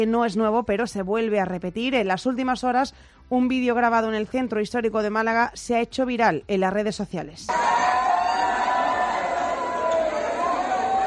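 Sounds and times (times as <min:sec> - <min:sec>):
speech: 0:00.0 - 0:07.8
crowd of young people shouting over each other: 0:07.5 - 0:11.0.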